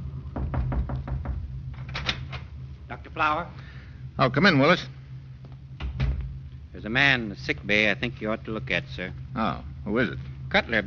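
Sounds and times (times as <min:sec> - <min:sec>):
rapid knocking on a medical officer's door aboard ship: 0:00.3 - 0:01.6
speech: 0:03.2 - 0:03.6, 0:04.2 - 0:05.0, 0:06.8 - 0:10.8.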